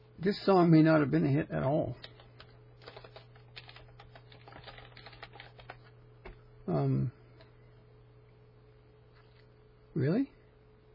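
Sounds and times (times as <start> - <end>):
speech: 0.2 - 2.1, 6.7 - 7.2, 10.0 - 10.4
fingers typing a name into a search on a computer keyboard: 2.0 - 5.9.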